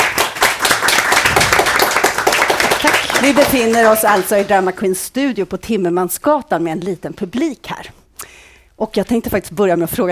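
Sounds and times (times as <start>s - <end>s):
audience applause: 0.0s - 4.6s
speech: 3.2s - 10.1s.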